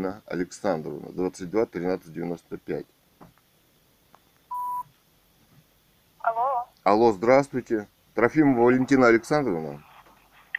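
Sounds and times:
speech: 0.0s - 3.0s, 6.3s - 9.9s
touch-tone telephone keypad beep: 4.5s - 4.8s.

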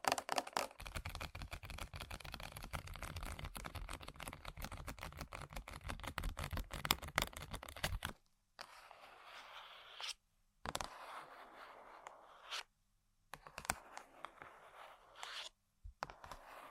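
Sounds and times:
tapping and scratching on random objects: 0.0s - 8.8s, 13.4s - 15.4s, 16.0s - 16.6s.

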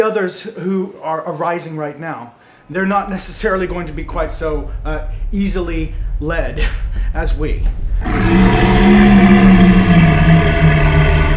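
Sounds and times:
speech: 0.0s - 9.1s
dragon turtle roaring: 2.7s - 11.3s.

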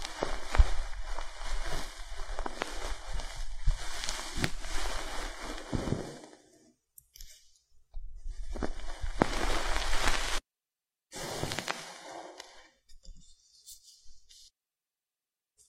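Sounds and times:
crackles and thumps: 0.0s - 6.4s, 7.8s - 10.4s, 11.2s - 13.1s
ear picking and massage rustling, scraping and rubbing: 0.0s - 10.4s, 11.2s - 14.5s.

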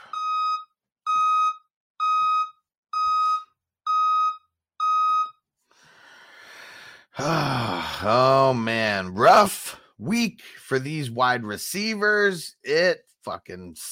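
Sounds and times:
reversing truck backup beeper: 0.0s - 5.4s
speech: 7.2s - 13.9s.

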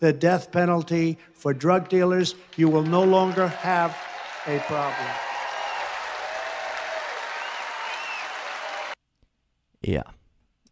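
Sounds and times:
speech: 0.0s - 5.2s, 9.8s - 10.2s
crowd applause after a rally line: 1.7s - 9.0s
faint cheering: 2.5s - 9.0s.

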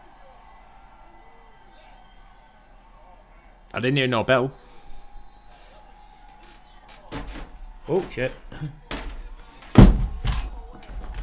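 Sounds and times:
speech: 3.8s - 4.6s, 7.9s - 8.8s
laptop falling off a desk: 6.4s - 11.2s.

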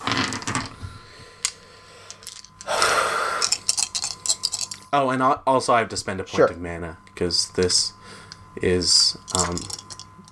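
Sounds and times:
dice being rolled: 0.0s - 0.8s, 1.4s - 2.8s, 3.4s - 4.8s, 9.3s - 10.1s
speech: 4.9s - 8.0s, 8.6s - 9.8s.

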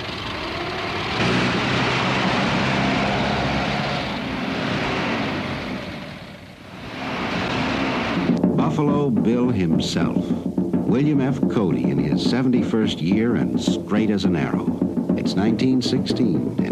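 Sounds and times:
racing cars roaring past at an auto race: 0.0s - 8.4s
speech: 8.8s - 16.6s.

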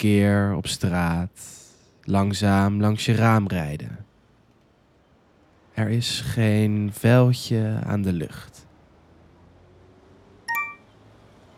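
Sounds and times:
speech: 0.0s - 4.1s, 5.8s - 8.6s
faint hiss: 0.0s - 9.5s
phone message notification chime: 10.5s - 10.9s.

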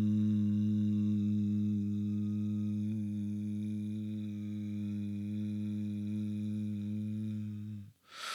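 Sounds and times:
low sustained hum during breathing exercise: 0.0s - 7.9s
breathy intake: 8.1s - 8.3s.

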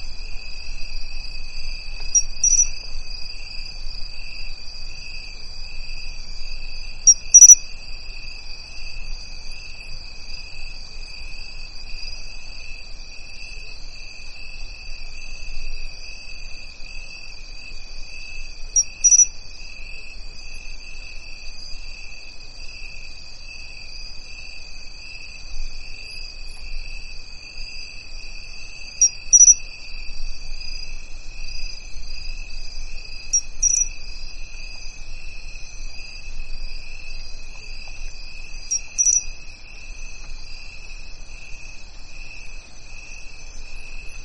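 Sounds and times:
crickets trilling in a dry bamboo grove: 0.0s - 44.2s.

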